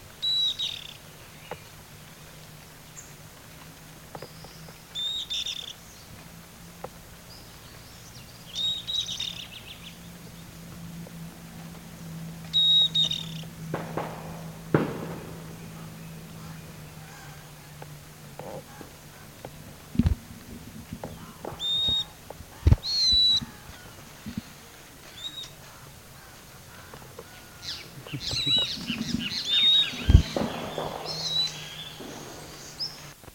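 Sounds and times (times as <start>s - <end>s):
low steady hum: 0.0s - 33.3s
bird whistle: 0.2s - 1.0s, 4.2s - 5.8s, 8.4s - 10.1s, 12.4s - 17.7s, 21.1s - 24.4s, 25.0s - 25.8s, 26.8s - 33.2s.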